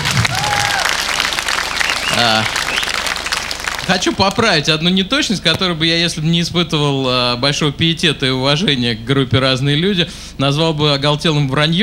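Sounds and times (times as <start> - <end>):
studio audience applause: 0.0 - 4.3
person cheering: 0.1 - 1.0
speech: 2.2 - 2.6, 3.9 - 11.8.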